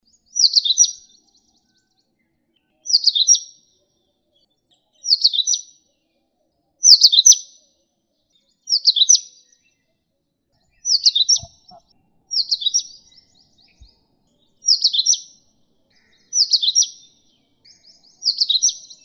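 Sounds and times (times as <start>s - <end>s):
Indian Oriental magpie-robin singing: 0.1s - 1.9s, 2.7s - 3.7s, 4.8s - 5.9s, 6.8s - 7.6s, 8.3s - 9.9s, 10.6s - 19.0s.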